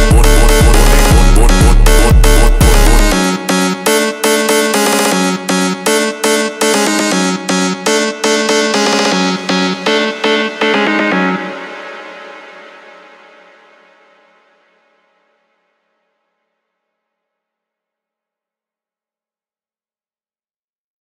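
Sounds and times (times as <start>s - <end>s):
funk music: 0.0s - 11.8s.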